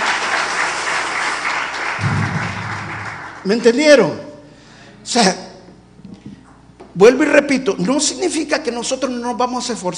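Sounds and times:
audience applause: 0:00.0 - 0:03.7
low rumble: 0:02.0 - 0:03.4
speech: 0:03.4 - 0:04.2, 0:05.0 - 0:05.5, 0:07.0 - 0:09.9.

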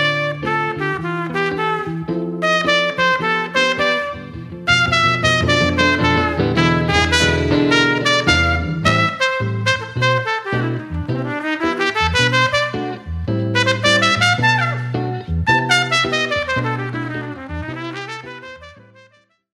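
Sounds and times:
guitar: 0:00.0 - 0:19.2
trumpet: 0:00.0 - 0:19.4.

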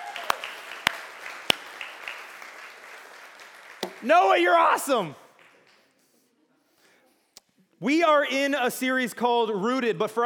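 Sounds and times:
audience applause: 0:00.0 - 0:04.4
speech: 0:04.0 - 0:05.2, 0:07.8 - 0:10.2.

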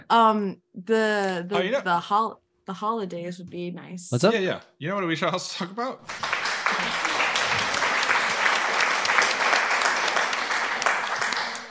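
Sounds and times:
speech: 0:00.1 - 0:07.2
applause: 0:06.0 - 0:11.6.

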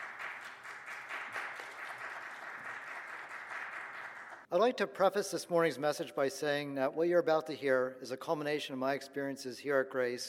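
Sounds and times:
audience applause: 0:00.0 - 0:04.5
speech: 0:04.5 - 0:10.2.

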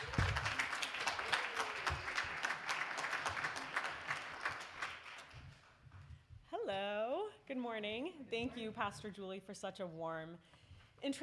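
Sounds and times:
audience applause: 0:00.0 - 0:05.7
speech: 0:07.5 - 0:11.2.

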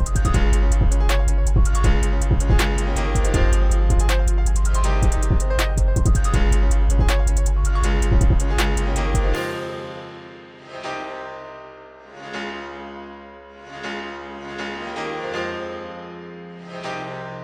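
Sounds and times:
music beat: 0:00.0 - 0:10.0.

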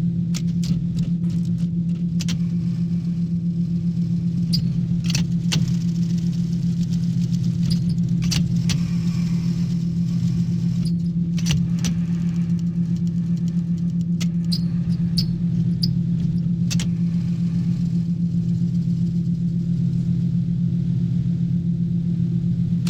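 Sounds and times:
revolving machine humming: 0:00.1 - 0:22.8.

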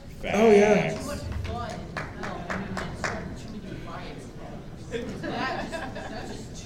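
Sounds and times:
audience applause: 0:00.3 - 0:03.2
laughter: 0:04.9 - 0:06.5.

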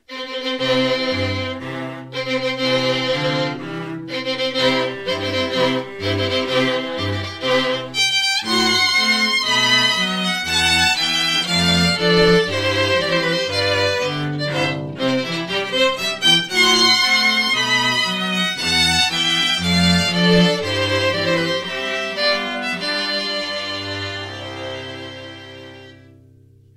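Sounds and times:
wedding march music: 0:00.2 - 0:26.1.

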